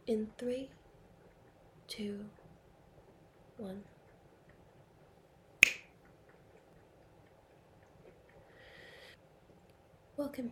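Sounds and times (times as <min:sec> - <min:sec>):
speech: 0:00.1 - 0:00.8, 0:01.9 - 0:02.4, 0:03.6 - 0:03.9, 0:10.2 - 0:10.5
finger snap: 0:05.6 - 0:05.9.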